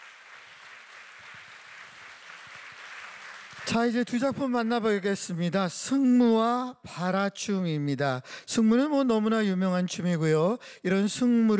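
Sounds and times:
audience applause: 0.0 - 4.0
speech: 3.6 - 11.5.

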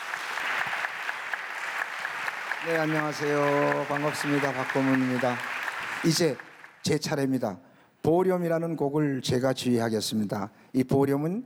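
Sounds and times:
audience applause at a traditional Korean folk music concert: 0.0 - 7.0
speech: 2.6 - 11.4.

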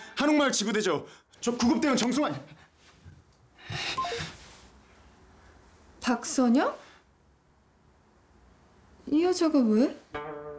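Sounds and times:
speech: 0.2 - 2.6, 3.7 - 4.3, 6.1 - 6.8, 9.1 - 10.4
soft rustle: 2.8 - 6.0
breathy noise: 3.6 - 4.7
mobile phone keypad beeps: 4.0 - 4.3.

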